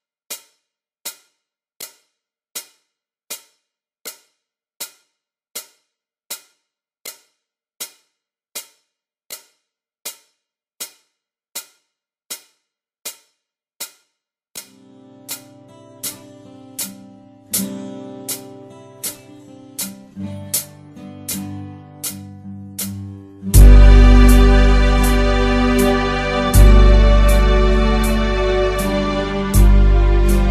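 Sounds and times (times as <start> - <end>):
song: 23.4 - 30.4.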